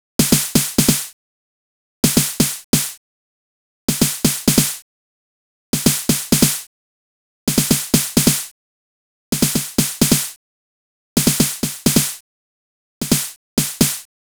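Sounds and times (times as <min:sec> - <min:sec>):
EDM snare drum: 0:00.2 - 0:01.2, 0:02.0 - 0:03.0, 0:03.9 - 0:04.8, 0:05.8 - 0:06.7, 0:07.5 - 0:08.5, 0:09.3 - 0:10.4, 0:11.2 - 0:12.2, 0:13.0 - 0:14.1.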